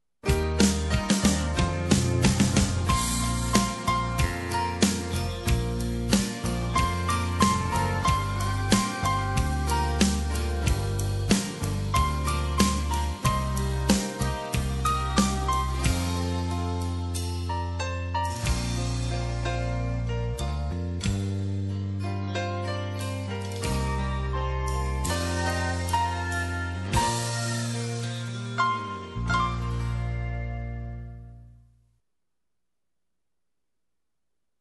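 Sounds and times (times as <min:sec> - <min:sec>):
country ballad in three-four time: 0:00.3 - 0:31.2.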